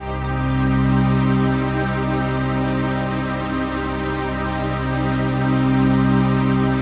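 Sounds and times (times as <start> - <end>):
dance mega synth pad: 0.0 - 6.8.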